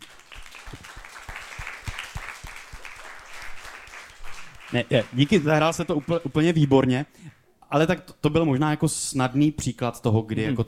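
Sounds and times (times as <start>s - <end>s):
crowd applauding: 0.0s - 6.8s
speech: 4.7s - 10.6s.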